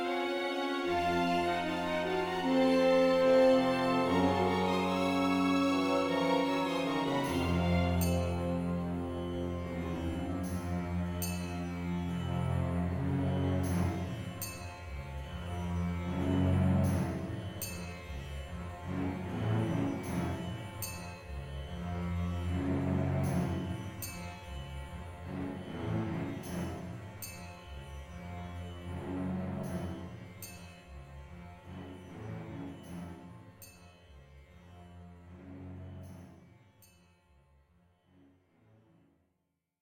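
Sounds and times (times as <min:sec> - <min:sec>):
Middle Eastern travel music: 0:00.0 - 0:30.2.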